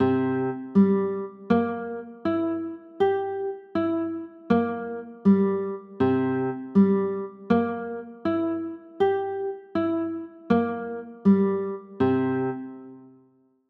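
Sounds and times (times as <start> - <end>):
chords: 0.0 - 13.1.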